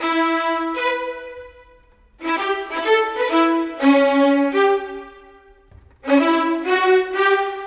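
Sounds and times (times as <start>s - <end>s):
violins: 0.0s - 7.6s.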